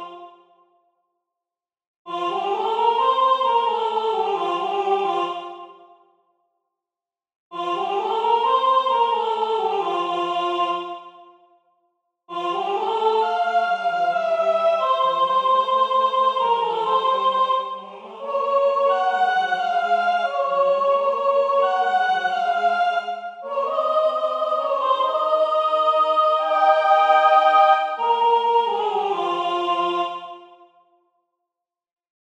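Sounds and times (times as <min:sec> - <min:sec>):
soprano singing: 0:02.1 - 0:05.5, 0:07.5 - 0:10.8, 0:12.3 - 0:30.6.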